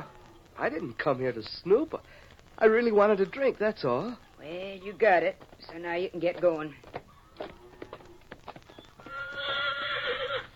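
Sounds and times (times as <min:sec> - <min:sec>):
horse hooves clip-clopping: 0:00.0 - 0:10.5
speech: 0:00.6 - 0:06.9
horse neighing: 0:09.0 - 0:10.5.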